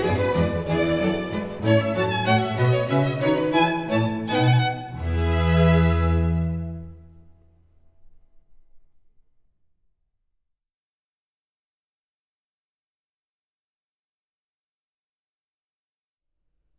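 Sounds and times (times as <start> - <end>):
violin concerto in E major: 0.0 - 7.2.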